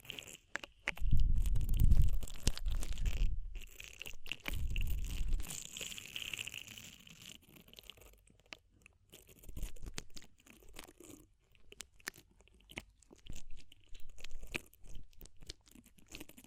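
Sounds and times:
ear cleaning crunchy scrapes: 0.0s - 7.5s
clicks and crackles: 0.0s - 16.4s.

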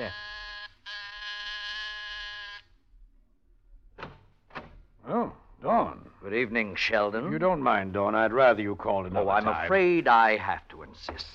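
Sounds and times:
speech: 0.0s - 0.2s, 5.2s - 11.3s
apartment door buzzer: 0.0s - 2.7s.

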